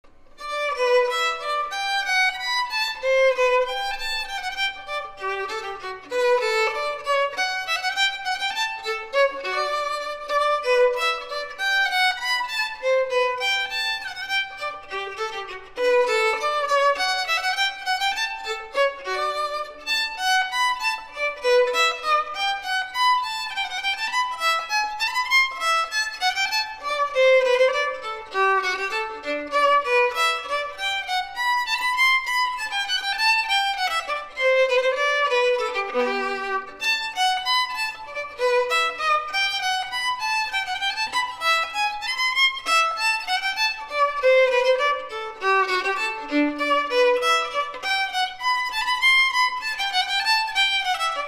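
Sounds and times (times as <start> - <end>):
violinist playing a bourree: 0.0 - 51.2.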